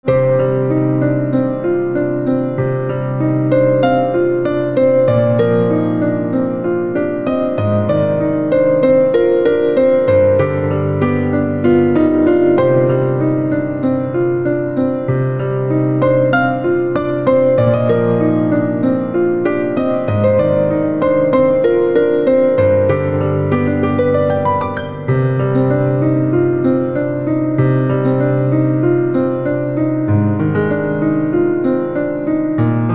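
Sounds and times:
piano: 0.0s - 32.9s.

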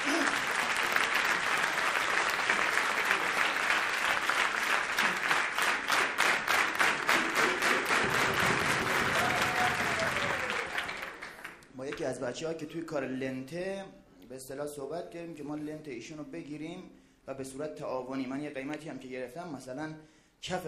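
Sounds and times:
audience applause: 0.0s - 11.6s
speech: 12.3s - 20.6s.

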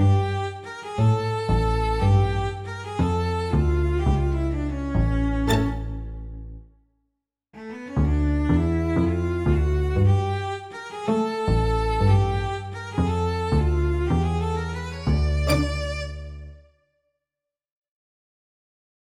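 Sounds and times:
pizzicato strings: 0.0s - 6.6s, 8.0s - 16.6s.

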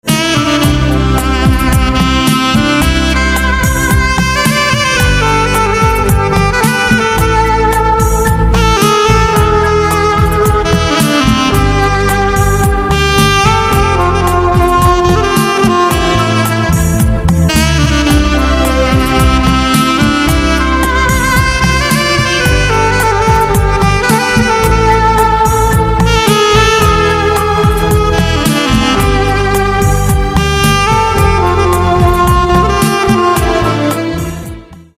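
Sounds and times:
saxophone: 0.0s - 34.9s.

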